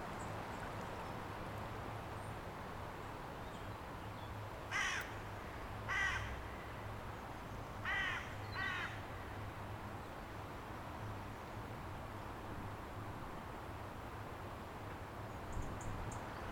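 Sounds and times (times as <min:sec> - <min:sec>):
River Ely soundscape: 0:00.0 - 0:16.5.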